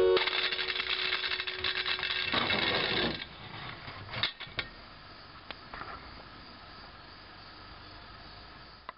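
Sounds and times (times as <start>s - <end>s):
spinning top: 0.2s - 3.5s.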